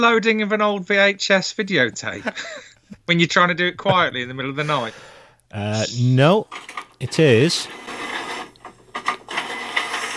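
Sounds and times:
speech: 0.0 - 7.8
printer printing: 7.6 - 10.1.

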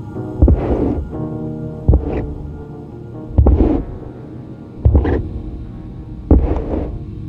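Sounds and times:
slow thumping footsteps climbing basement stairs: 0.4 - 1.1, 1.9 - 2.5, 3.3 - 4.0, 4.8 - 5.3.

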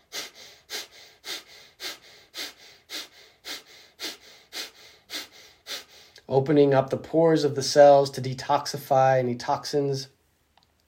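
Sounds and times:
forceful breaths through the nose or mouth during guided breathwork: 0.0 - 6.3
speech: 6.3 - 10.2.

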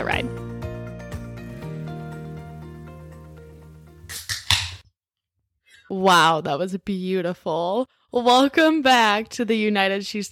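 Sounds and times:
speech: 0.1 - 0.4, 6.0 - 10.3
can of pumpkin pie ale cracked open: 4.1 - 4.8.

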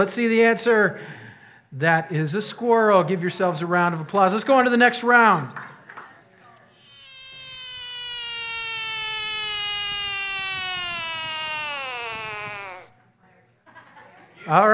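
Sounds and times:
speech: 0.0 - 5.7, 14.5 - 14.7
frog calling: 6.8 - 12.9.

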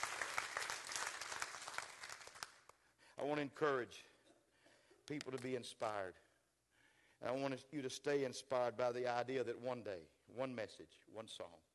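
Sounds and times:
crowd clapping: 0.0 - 2.8
speech: 3.2 - 4.1, 5.1 - 6.2, 7.2 - 11.7.

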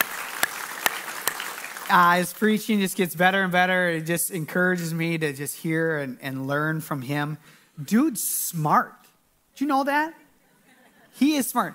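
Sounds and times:
audience applause: 0.0 - 2.2
speech: 1.9 - 9.0, 9.6 - 10.2, 11.2 - 11.7.

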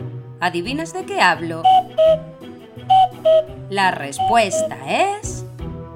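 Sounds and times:
speech: 0.4 - 2.4, 3.2 - 5.4
cuckoo call: 1.6 - 2.3, 2.9 - 5.1.

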